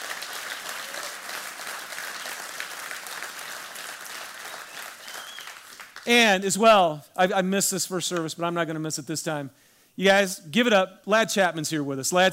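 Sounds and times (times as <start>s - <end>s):
audience applause: 0.0s - 6.1s
speech: 6.0s - 12.3s.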